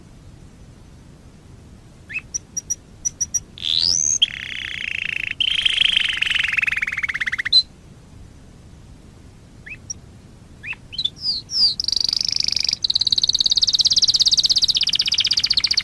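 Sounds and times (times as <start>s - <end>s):
Waterslager canary singing a high pulsed trill: 2.1s - 7.7s, 9.6s - 10.0s, 10.6s - 15.8s.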